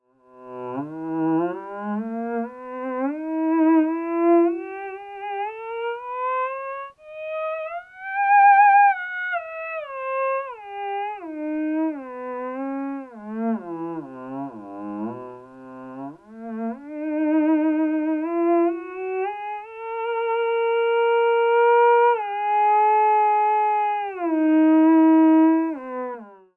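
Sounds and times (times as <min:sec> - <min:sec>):
theremin through ews resonator: 0:00.9 - 0:15.3, 0:16.4 - 0:26.0.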